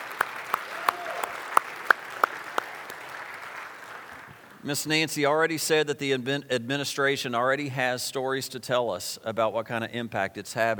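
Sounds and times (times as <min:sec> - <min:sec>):
audience applause, hand clapping: 0:00.0 - 0:04.5
speech: 0:04.6 - 0:10.7.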